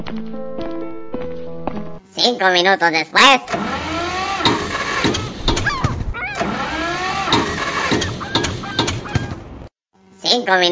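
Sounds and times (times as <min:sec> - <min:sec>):
speech: 0:00.1 - 0:00.6, 0:02.2 - 0:03.8, 0:10.3 - 0:10.6
car engine starting and running: 0:03.5 - 0:09.7.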